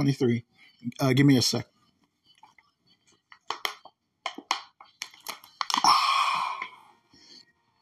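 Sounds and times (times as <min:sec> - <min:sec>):
speech: 0:00.0 - 0:01.7
person taking a drink: 0:05.0 - 0:06.9.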